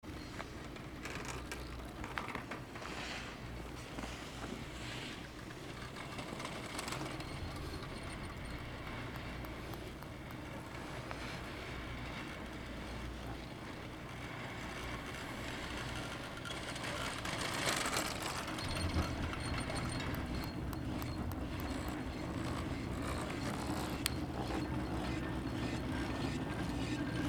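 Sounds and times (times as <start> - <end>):
chairlift running: 0.1 - 27.2.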